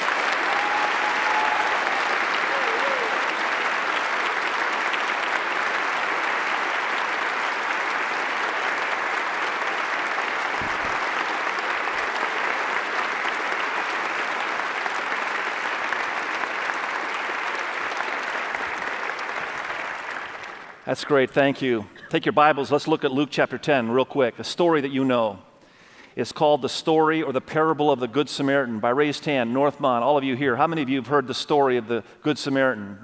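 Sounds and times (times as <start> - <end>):
church congregation applause welcoming guests: 0.0 - 21.7
speech: 20.9 - 25.5, 26.2 - 33.0.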